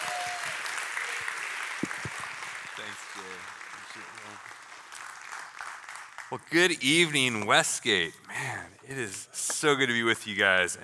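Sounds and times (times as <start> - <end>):
audience applause welcoming a guest speaker at a Westgate evening gathering: 0.0 - 7.6
speech: 2.8 - 4.7, 6.3 - 10.8.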